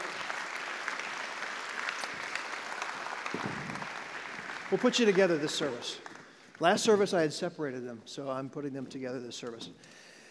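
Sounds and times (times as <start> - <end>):
audience applause: 0.0 - 6.9
speech: 4.7 - 10.1.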